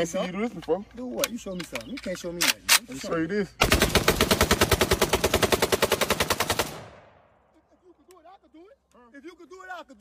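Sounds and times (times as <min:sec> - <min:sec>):
speech: 0:00.0 - 0:04.2, 0:09.8 - 0:09.9
automatic gunfire from a firearm: 0:03.6 - 0:07.1.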